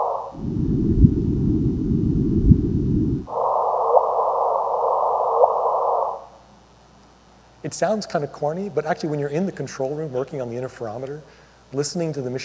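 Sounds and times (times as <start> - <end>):
gravitational wave chirp from merging black holes, frequency shifted up by 400 hertz: 0.0 - 6.5
speech: 7.7 - 12.4.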